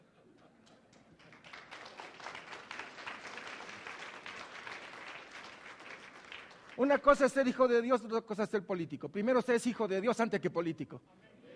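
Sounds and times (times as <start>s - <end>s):
faint audience applause: 0.6s - 7.2s
speech: 6.8s - 11.2s.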